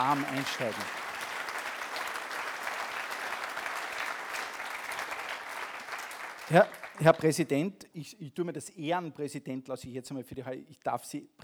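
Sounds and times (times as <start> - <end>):
speech: 0.0 - 1.0, 6.5 - 11.4
audience applause: 0.0 - 7.3.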